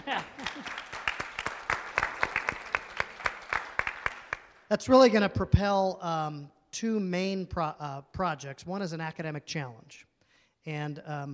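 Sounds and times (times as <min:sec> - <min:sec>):
audience applause: 0:00.0 - 0:04.6
speech: 0:04.7 - 0:11.3.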